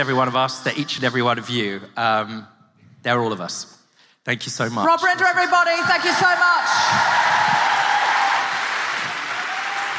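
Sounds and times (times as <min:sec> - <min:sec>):
speech: 0:00.0 - 0:07.7
audience applause: 0:06.2 - 0:09.9.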